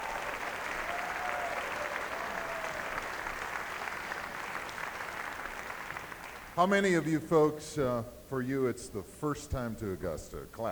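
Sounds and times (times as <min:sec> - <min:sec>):
audience applause: 0:00.0 - 0:07.1
speech: 0:06.6 - 0:10.6.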